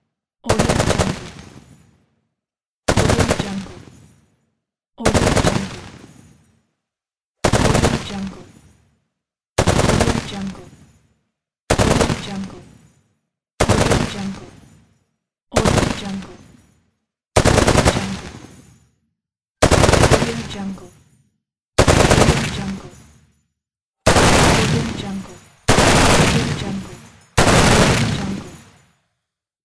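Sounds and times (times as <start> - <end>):
heavy machine gun firing: 0.5 - 1.5, 2.9 - 3.8, 5.0 - 6.0, 7.4 - 8.4, 9.6 - 10.6, 11.7 - 12.6, 13.6 - 14.5, 15.6 - 16.4, 17.4 - 18.6, 19.6 - 20.8, 21.8 - 23.0, 24.1 - 28.8.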